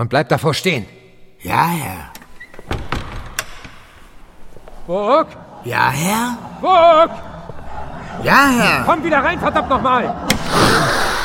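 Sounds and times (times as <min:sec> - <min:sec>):
speech: 0:00.0 - 0:02.2, 0:04.9 - 0:07.3, 0:08.2 - 0:11.0
door click: 0:02.1 - 0:04.1
door being closed knocks and thuds: 0:02.5 - 0:04.0
laughter: 0:04.8 - 0:11.2.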